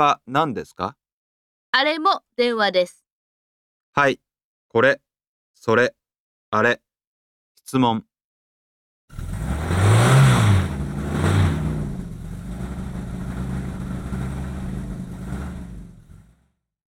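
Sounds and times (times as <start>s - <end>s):
speech: 0.0s - 1.0s, 1.7s - 3.0s, 4.0s - 5.0s, 5.6s - 6.8s, 7.7s - 8.1s
taxi engine revving and idling: 9.1s - 16.5s.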